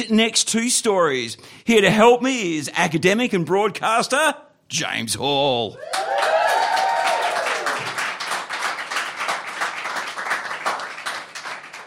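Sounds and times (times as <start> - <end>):
speech: 0.0 - 6.3
audience clapping: 5.8 - 11.8.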